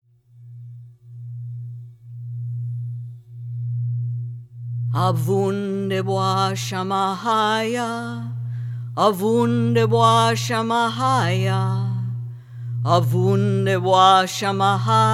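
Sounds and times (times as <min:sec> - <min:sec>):
sung prayer: 0:04.9 - 0:15.1.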